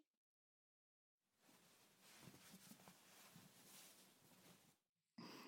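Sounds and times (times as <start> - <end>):
finger ear cleaning ASMR: 1.5 - 4.7.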